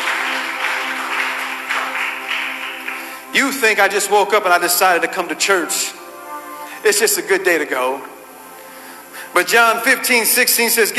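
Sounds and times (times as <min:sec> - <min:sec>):
audience clapping: 0:00.0 - 0:03.4
speech: 0:03.4 - 0:06.0, 0:06.8 - 0:08.2, 0:09.4 - 0:10.9.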